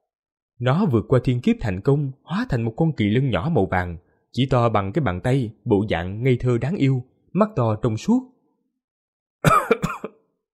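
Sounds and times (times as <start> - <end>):
speech: 0.6 - 8.3
person coughing up blood: 9.4 - 10.3.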